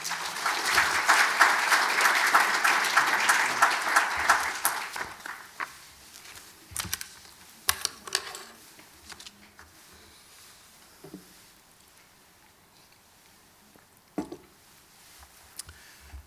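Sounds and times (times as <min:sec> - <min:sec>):
audience applause welcoming a lecturer to a natural history talk: 0:00.0 - 0:05.7.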